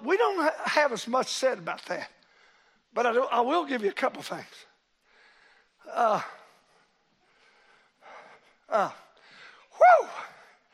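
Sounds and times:
speech: 0.7s - 2.2s, 2.9s - 4.7s, 5.8s - 6.4s, 8.7s - 9.0s, 9.8s - 10.3s
man gasping for breath: 5.1s - 9.8s.

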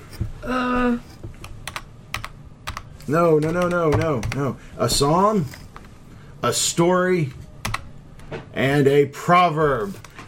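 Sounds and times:
speech: 0.4s - 1.1s, 3.1s - 5.6s, 6.4s - 7.4s, 8.3s - 10.1s
computer keyboard clicks advancing presentation slides during a school chapel service: 1.4s - 4.5s.

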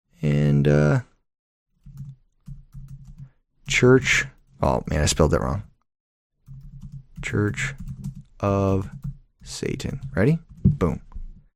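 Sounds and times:
speech: 0.2s - 1.1s, 3.8s - 5.7s, 7.2s - 11.1s
typing on a computer keyboard: 1.8s - 4.6s, 6.4s - 11.0s.

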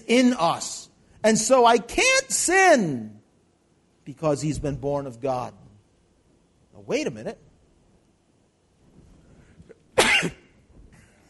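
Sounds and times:
speech: 0.1s - 3.2s, 4.1s - 5.6s, 6.8s - 7.4s
sneeze: 10.0s - 11.1s.

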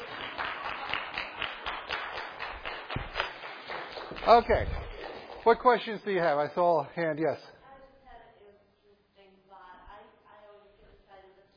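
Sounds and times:
applause: 0.0s - 6.0s
speech: 4.2s - 4.8s, 5.4s - 7.6s.

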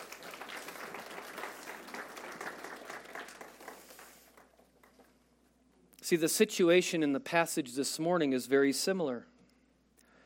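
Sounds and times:
room full of people clapping: 0.0s - 5.3s
speech: 6.1s - 9.3s.

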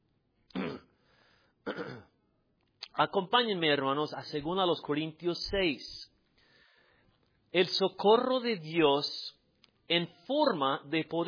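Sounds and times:
preacher clearing throat during a Spanish-language sermon after something got caught: 0.5s - 1.0s, 1.6s - 2.2s
speech: 1.7s - 2.1s, 3.0s - 6.1s, 7.5s - 11.2s.

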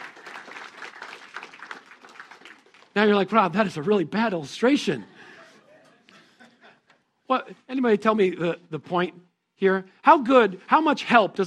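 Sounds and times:
audience applause for volunteer helpers at a Christmas gathering: 0.0s - 3.2s
speech: 3.0s - 5.1s, 7.3s - 11.4s
laughter: 4.9s - 7.1s.

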